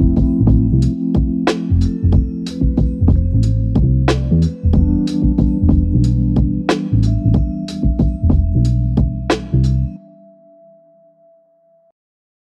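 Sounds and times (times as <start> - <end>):
hip hop music: 0.0 - 9.9.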